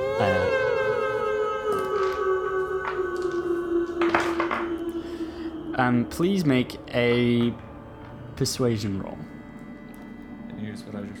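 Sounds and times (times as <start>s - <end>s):
wolf howling: 0.0s - 7.4s
speech: 5.9s - 7.7s, 8.4s - 9.3s, 10.8s - 11.1s.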